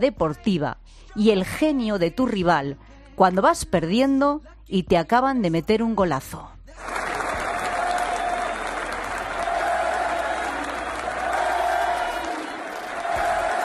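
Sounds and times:
speech: 0.0s - 7.0s
Betis fans applauding in Benito Villamarín stadium: 6.8s - 13.6s.

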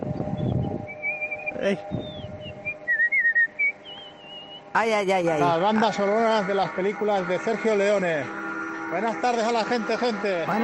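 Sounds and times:
person whistling a melodic phrase with trills: 0.3s - 4.7s
speech: 1.6s - 2.2s, 4.8s - 10.6s.

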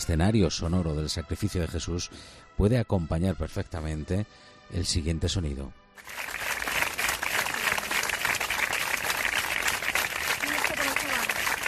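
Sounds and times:
speech: 0.0s - 6.4s
crowd applauding a deceased nurse: 6.0s - 11.6s.

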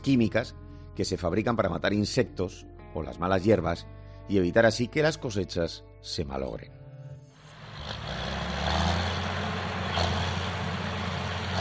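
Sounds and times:
speech: 0.0s - 6.8s
tractor engine running: 7.5s - 11.5s.

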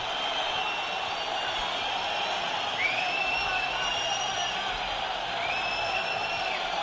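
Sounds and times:
shrill whistles from stadium crowd: 0.0s - 6.8s
stadium crowd jeering Betis after home defeat to Valladolid: 0.0s - 6.8s.

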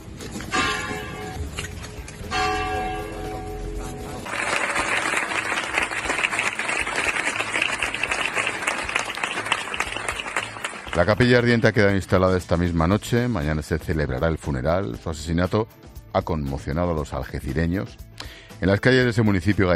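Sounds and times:
bell strikes: 2.3s - 4.9s
crowd applause as coffin arrives at church: 4.2s - 11.4s
speech: 11.0s - 18.0s, 18.6s - 19.7s.

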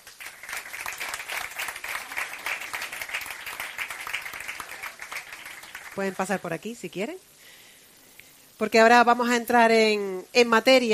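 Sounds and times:
audience applause: 0.0s - 6.4s
speech: 6.0s - 7.3s, 8.6s - 10.9s.

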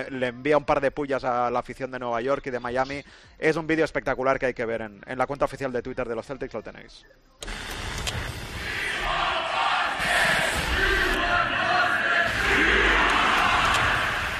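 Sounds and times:
speech: 0.0s - 8.2s
crowd chanting: 8.6s - 14.3s.

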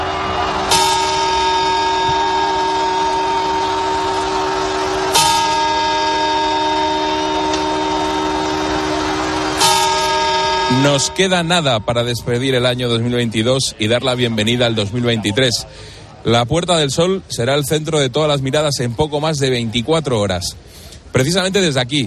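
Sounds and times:
clock tower striking the hour: 0.0s - 14.9s
speech: 10.8s - 22.0s.

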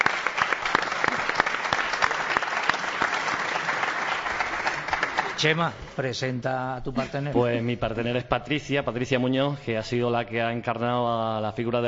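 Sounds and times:
audience applause: 0.0s - 5.7s
speech: 5.4s - 11.8s.

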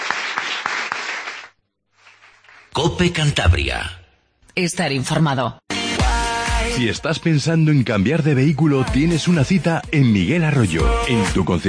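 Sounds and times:
audience applause: 0.0s - 2.7s
speech: 2.8s - 4.0s, 4.6s - 5.6s, 6.8s - 11.6s.

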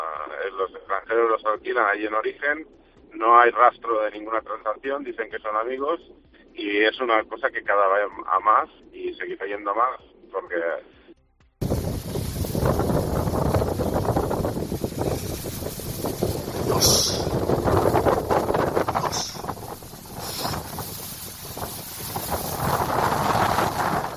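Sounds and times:
speech: 0.4s - 11.0s
rain falling: 11.6s - 24.1s.

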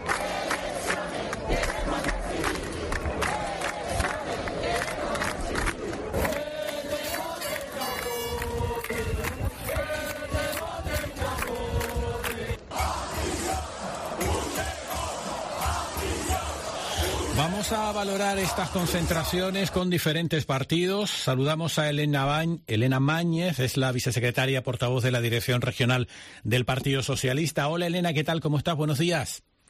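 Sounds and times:
large protest crowd chanting slogans outside party headquarters: 0.0s - 20.0s
speech: 17.9s - 29.5s.

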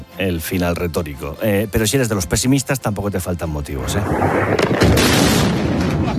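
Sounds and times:
speech: 0.2s - 6.1s
explosions from weekend cross attacks between the United States and Iran: 3.8s - 6.1s.

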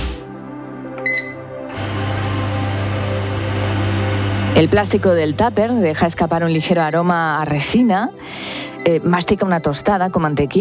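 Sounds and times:
microwave oven heating milk: 1.1s - 7.0s
speech: 4.6s - 10.5s.

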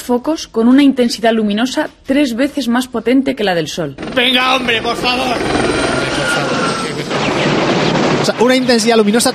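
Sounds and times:
speech: 0.1s - 6.5s, 8.2s - 9.3s
police helicopter from the Blue Thunder TV series roaring: 4.0s - 9.3s.

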